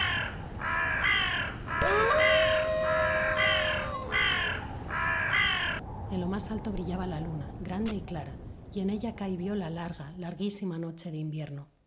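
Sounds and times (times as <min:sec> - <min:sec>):
shrill black crows cawing: 0:00.0 - 0:05.8
speech: 0:06.4 - 0:11.7.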